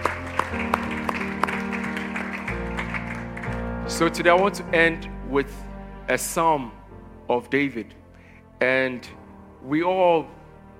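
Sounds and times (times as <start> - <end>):
audience clapping: 0.0 - 4.7
sustained keyboard chords: 0.0 - 10.7
speech: 4.0 - 8.0, 8.6 - 10.7.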